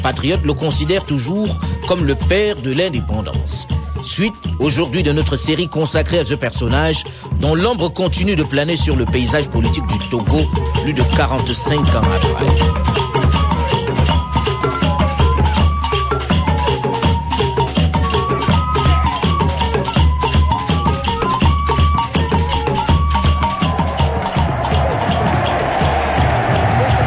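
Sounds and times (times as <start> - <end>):
speech: 0.0 - 13.4
crowd cheering at a flag raising: 9.5 - 27.0.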